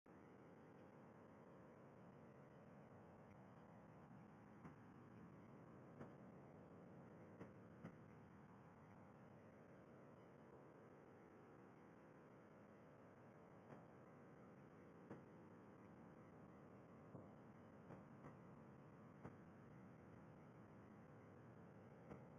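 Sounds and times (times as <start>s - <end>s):
background noise: 0.1s - 22.3s.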